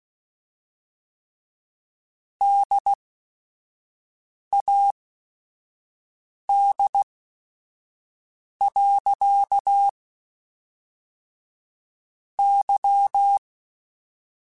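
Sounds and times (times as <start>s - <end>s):
Morse code radio QSOs: 2.4s - 3.0s, 6.5s - 7.0s, 8.6s - 9.9s, 12.4s - 13.4s.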